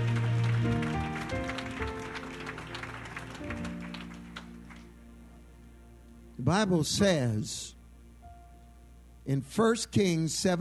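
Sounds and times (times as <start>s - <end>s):
scattered audience clapping: 0.0s - 5.0s
loud organ-like musical chords: 0.0s - 10.5s
speech: 6.5s - 7.8s, 9.3s - 10.5s.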